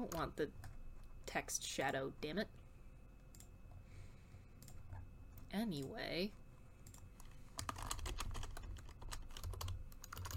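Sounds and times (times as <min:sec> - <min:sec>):
speech: 0:00.0 - 0:00.7, 0:01.3 - 0:02.6, 0:05.5 - 0:06.4
typing on a computer keyboard: 0:06.9 - 0:10.3.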